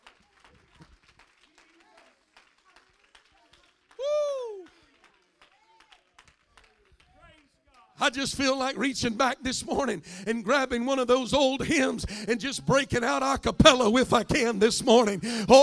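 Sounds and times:
audience clapping hands: 0.0 - 8.0
speech: 8.0 - 15.6.

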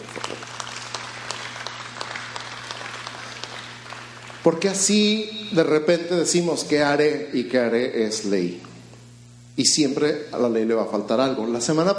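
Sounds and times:
audience applause: 0.0 - 5.2
low electrical hum: 0.0 - 11.9
speech: 4.4 - 8.7, 9.6 - 11.9.

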